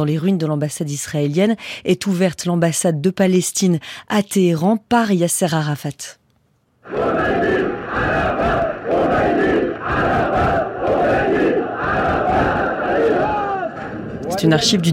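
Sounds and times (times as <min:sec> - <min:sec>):
speech: 0:00.0 - 0:06.2, 0:06.9 - 0:09.3, 0:14.4 - 0:14.9
Iranian crowd chanting a slogan in unison: 0:06.8 - 0:14.9.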